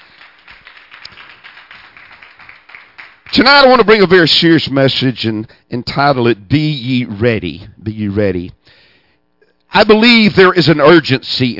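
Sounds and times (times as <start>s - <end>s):
church congregation clapping in praise: 0.0s - 4.2s
speech: 3.4s - 8.8s, 9.7s - 11.5s.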